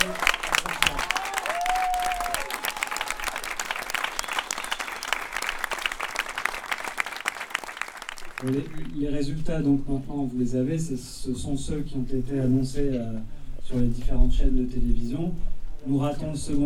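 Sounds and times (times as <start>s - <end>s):
audience applause: 0.0s - 9.0s
speech: 8.4s - 16.6s.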